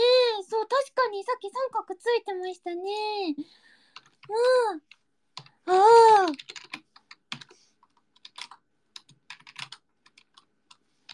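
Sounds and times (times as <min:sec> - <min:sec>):
speech: 0:01.2 - 0:03.7, 0:04.3 - 0:04.9, 0:05.7 - 0:06.6
typing on a computer keyboard: 0:03.9 - 0:05.6, 0:06.2 - 0:11.1.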